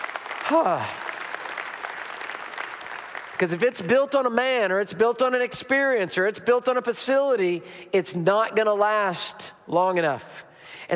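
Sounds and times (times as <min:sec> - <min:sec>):
audience applause: 0:00.0 - 0:03.6
speech: 0:00.5 - 0:01.0, 0:03.4 - 0:10.9.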